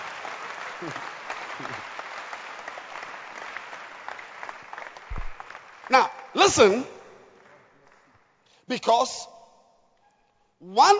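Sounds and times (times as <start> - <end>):
church congregation clapping for its pastor: 0.0 - 8.5
speech: 0.8 - 2.0, 5.9 - 7.0, 8.7 - 9.3, 10.6 - 10.9.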